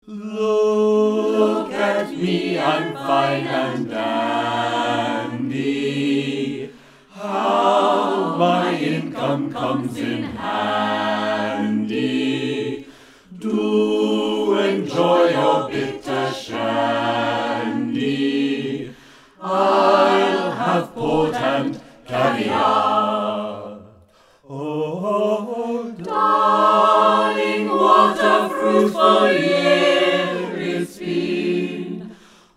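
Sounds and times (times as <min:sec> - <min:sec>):
SATB choir singing: 0:00.1 - 0:32.5.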